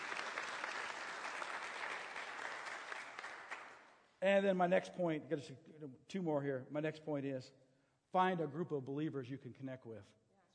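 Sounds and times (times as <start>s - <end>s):
audience applauding a graduate: 0.0s - 3.9s
speech: 4.2s - 10.2s.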